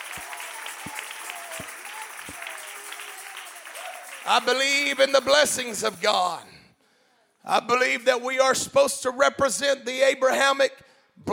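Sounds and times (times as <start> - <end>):
audience clapping hands: 0.0 - 6.5
speech: 4.3 - 6.5, 7.4 - 11.3.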